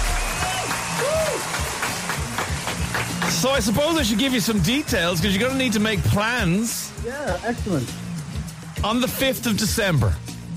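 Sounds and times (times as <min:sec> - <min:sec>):
people cheering: 0:00.0 - 0:10.2
speech: 0:03.4 - 0:08.0, 0:08.8 - 0:10.2.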